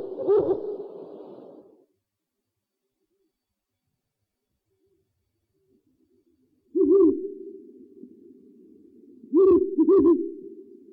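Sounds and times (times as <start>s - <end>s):
owl hooting: 0.0s - 1.7s, 6.7s - 8.1s, 9.1s - 10.7s.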